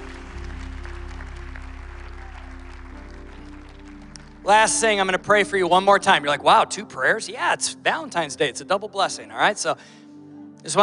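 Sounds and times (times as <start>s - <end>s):
audience applause: 0.0s - 5.0s
low sustained musical drone: 0.0s - 10.6s
speech: 4.4s - 10.0s, 10.6s - 10.8s.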